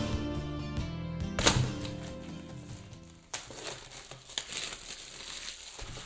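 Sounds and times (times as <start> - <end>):
soft music: 0.0 - 4.4
cellophane wrapping pulled off a HomePod Mini box: 1.4 - 6.0.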